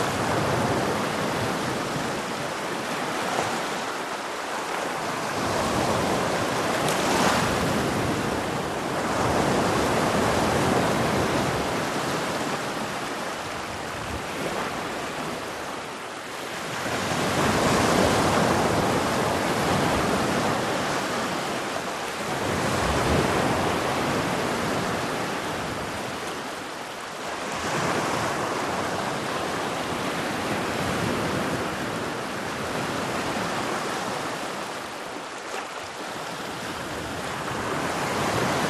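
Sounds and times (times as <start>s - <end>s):
gentle rolling waves on a black sand beach: 0.0s - 38.6s.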